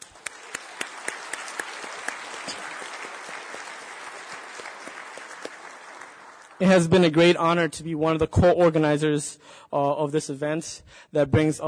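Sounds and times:
audience applause: 0:00.0 - 0:07.1
speech: 0:06.6 - 0:11.6.

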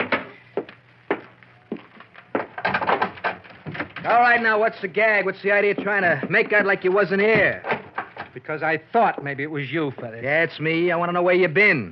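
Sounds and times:
door crashing and splintering: 0:02.4 - 0:04.2, 0:06.4 - 0:08.4
speech: 0:04.0 - 0:07.7, 0:08.4 - 0:11.9.

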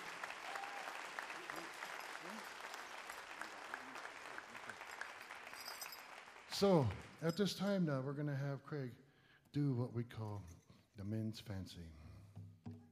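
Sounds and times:
audience applause: 0:00.0 - 0:07.3
speech: 0:06.6 - 0:12.0.

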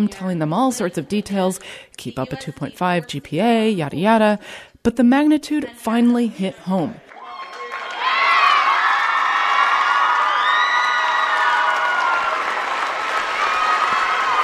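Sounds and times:
speech: 0:00.0 - 0:07.0
clapping: 0:07.0 - 0:14.4
students cheering in school auditorium: 0:07.0 - 0:14.4.

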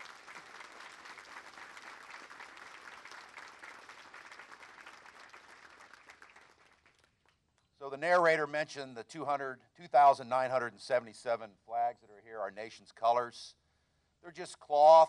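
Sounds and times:
round of applause: 0:00.0 - 0:07.4
speech: 0:07.9 - 0:13.6, 0:14.2 - 0:15.0.

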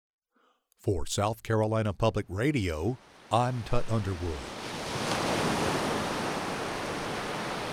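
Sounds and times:
speech: 0:00.8 - 0:05.0
ocean waves: 0:02.3 - 0:07.7.

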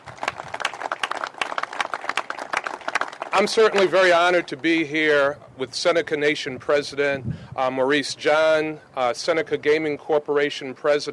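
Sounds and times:
audience applause: 0:00.0 - 0:04.1
speech: 0:03.4 - 0:11.1.

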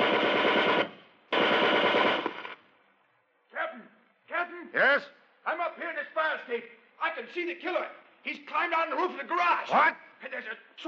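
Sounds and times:
machine gun fire: 0:00.0 - 0:02.6
speech: 0:04.7 - 0:05.2, 0:06.5 - 0:10.8.

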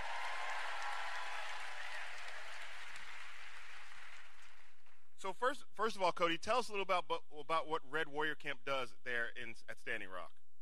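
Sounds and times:
audience applause welcoming a guest from Red Warrior Camp at Standing Rock: 0:00.0 - 0:04.9
speech: 0:05.2 - 0:10.4.

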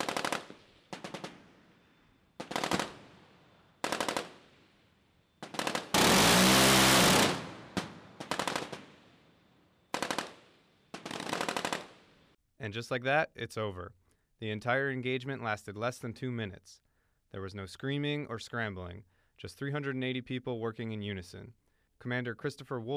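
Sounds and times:
radar-guided rotary cannon firing bursts: 0:00.0 - 0:12.4
speech: 0:12.7 - 0:22.9.

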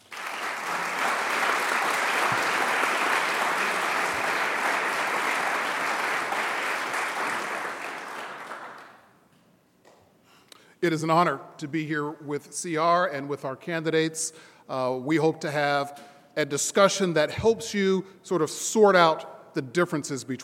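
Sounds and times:
audience applause welcoming three candidates for Congress at a forum: 0:00.0 - 0:09.0
speech: 0:10.8 - 0:20.4.

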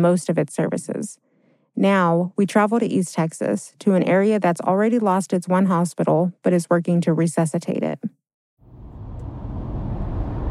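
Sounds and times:
speech: 0:00.0 - 0:01.2, 0:01.8 - 0:08.2
car engine and road rumble driving toward a hospital in Van Zandt County, East Texas: 0:08.6 - 0:10.4.

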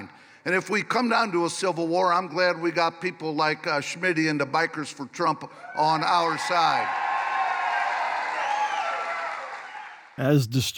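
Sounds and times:
speech: 0:00.4 - 0:07.0, 0:10.2 - 0:10.7
voices cheering: 0:05.6 - 0:10.1
crowd clapping at a Bikers for Trump rally: 0:06.7 - 0:10.2.

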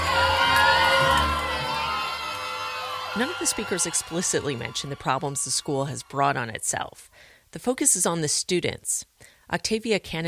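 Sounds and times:
excited crowd cheering at a graduation ceremony in Ovens Auditorium: 0:00.0 - 0:06.8
speech: 0:03.2 - 0:10.2.

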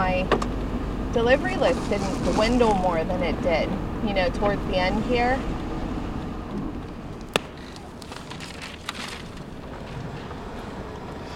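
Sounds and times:
old minivan driving, interior noises: 0:00.0 - 0:11.3
speech: 0:01.2 - 0:05.6.

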